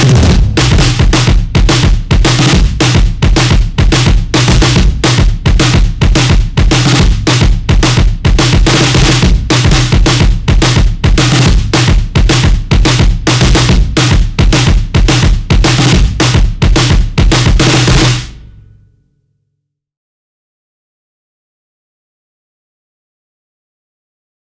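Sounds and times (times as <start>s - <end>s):
drums: 0.0s - 18.8s.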